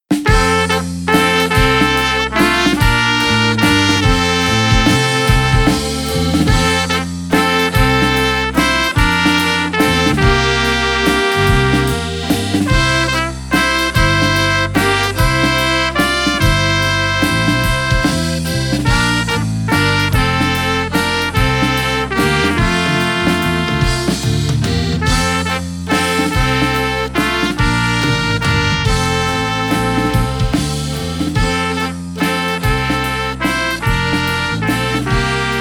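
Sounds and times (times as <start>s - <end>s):
waltz music: 0.3s - 35.6s.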